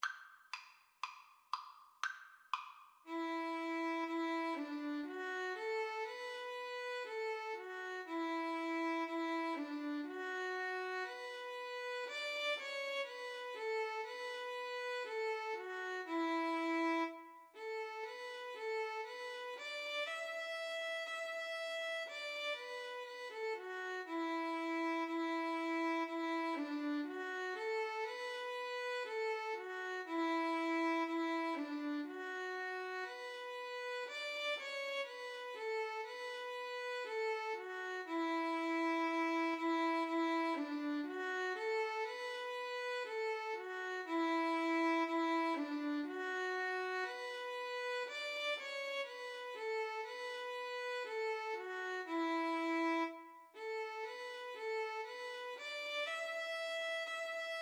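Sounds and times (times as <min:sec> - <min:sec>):
violin and viola duet: 0:03.1 - 0:57.5.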